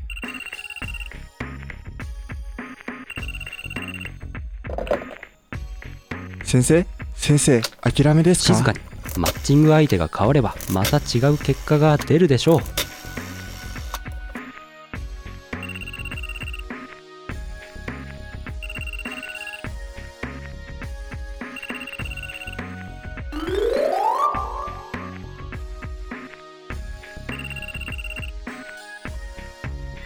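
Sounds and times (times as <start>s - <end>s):
mobile phone ringtone: 0.0s - 1.2s, 3.1s - 5.2s, 15.6s - 16.6s, 18.6s - 19.7s, 21.5s - 22.8s, 23.4s - 25.3s, 27.3s - 28.4s
speech: 6.5s - 12.8s.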